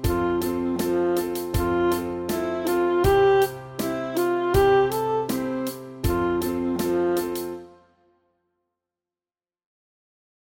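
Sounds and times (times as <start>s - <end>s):
saxophone study: 0.0s - 7.9s.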